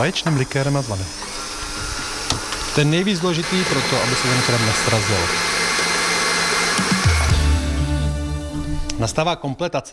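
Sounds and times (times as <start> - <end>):
speech: 0.0 - 1.4, 2.8 - 5.5, 9.0 - 9.9
electric mixer whisking cream: 0.0 - 7.8.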